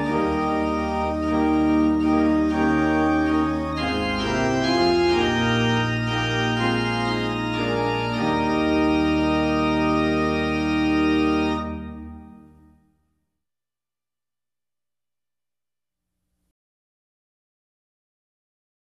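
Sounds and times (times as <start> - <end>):
hymn tune: 0.0 - 12.8.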